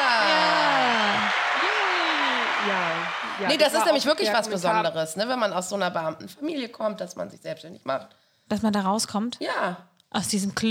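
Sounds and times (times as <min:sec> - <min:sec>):
applause sound effect: 0:00.4 - 0:04.4
speech: 0:03.4 - 0:10.6.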